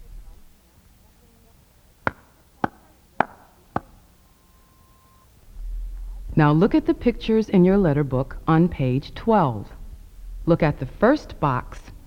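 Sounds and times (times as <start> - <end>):
soft hand clapping: 0.7 - 5.3
speech: 6.4 - 9.8, 10.4 - 12.0.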